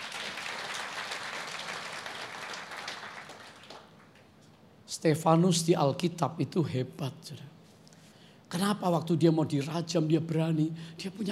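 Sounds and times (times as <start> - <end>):
audience applause: 0.0 - 4.2
speech: 5.0 - 7.5, 8.5 - 11.3.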